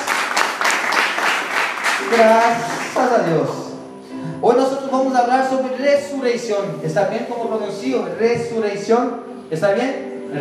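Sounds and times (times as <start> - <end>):
audience applause: 0.0 - 3.2
speech: 2.1 - 3.6, 4.4 - 10.3.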